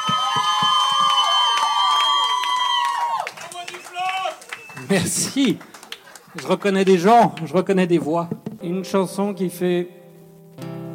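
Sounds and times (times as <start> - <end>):
high-pitched whoop: 0.0 - 3.6
audience shouts: 0.0 - 4.6
audience applauding: 0.0 - 7.6
speech: 4.9 - 5.7, 6.3 - 10.0.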